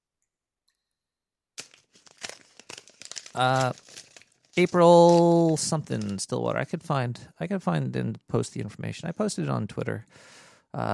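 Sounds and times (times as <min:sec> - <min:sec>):
paper check being handled, crinkling and rustling: 0:01.6 - 0:06.4
speech: 0:03.4 - 0:04.0, 0:04.6 - 0:10.9.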